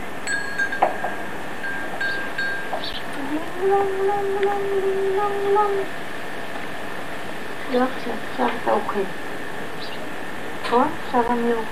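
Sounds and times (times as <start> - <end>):
bells ringing: 0.2 - 3.0
speech: 3.6 - 6.0, 7.7 - 9.2, 10.7 - 11.7.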